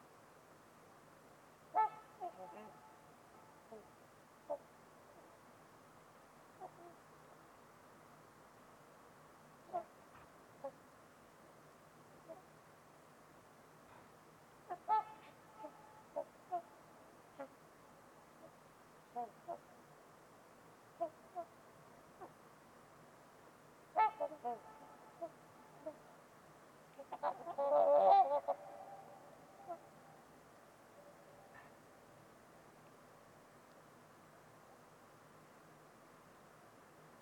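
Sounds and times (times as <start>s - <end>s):
low hiss: 0.0s - 37.2s
trumpeter swans honking: 1.7s - 3.9s, 14.7s - 17.6s, 23.9s - 26.0s, 26.9s - 30.2s.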